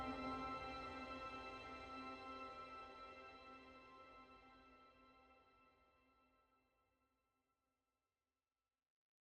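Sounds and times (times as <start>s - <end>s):
piano: 0.0s - 3.8s.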